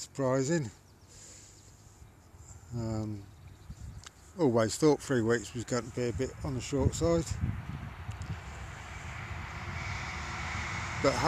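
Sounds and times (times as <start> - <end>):
speech: 0.0 - 0.8, 2.7 - 3.3, 4.4 - 7.8, 11.0 - 11.2
train passing by in the background: 7.8 - 11.2.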